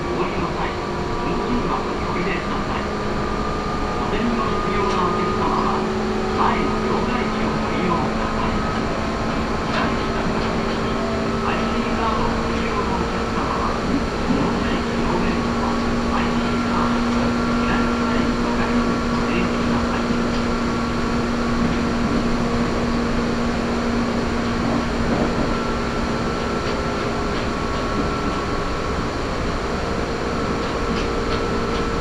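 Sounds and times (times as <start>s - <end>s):
Meitetsu Gamagori Line train running: 0.0s - 32.0s.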